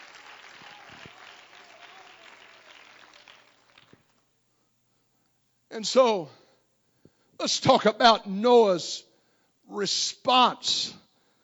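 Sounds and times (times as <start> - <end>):
audience clapping: 0.0 - 4.3
speech: 5.7 - 6.4, 7.4 - 9.1, 9.7 - 11.0.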